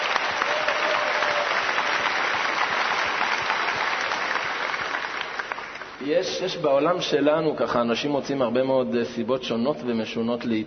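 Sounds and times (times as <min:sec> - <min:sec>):
audience applause: 0:00.0 - 0:06.0
speech: 0:06.0 - 0:10.6.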